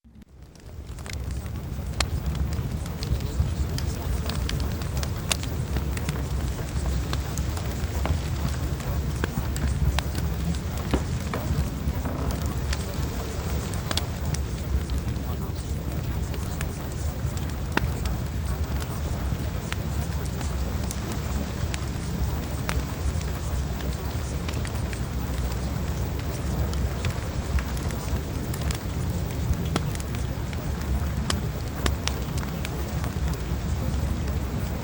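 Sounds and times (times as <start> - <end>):
fireplace: 0.2 - 34.8.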